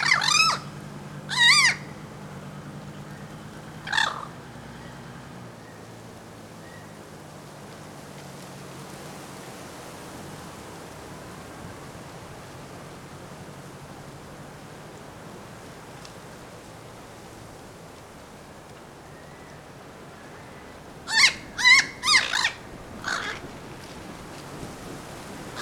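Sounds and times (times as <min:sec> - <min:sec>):
bird harsh squawks: 0:00.0 - 0:00.7, 0:01.3 - 0:01.9, 0:03.8 - 0:04.3, 0:21.1 - 0:23.5.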